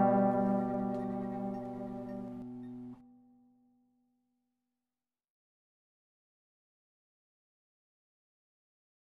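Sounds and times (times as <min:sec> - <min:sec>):
dobro guitar playing Christmas music: 0:00.0 - 0:03.0.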